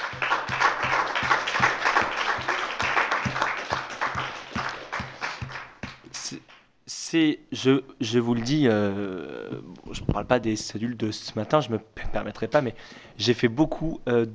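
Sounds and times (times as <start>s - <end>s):
audience applause: 0.0s - 6.0s
rhythmic thumping like stamping or beat-clapping: 0.0s - 6.5s
speech: 7.1s - 14.3s.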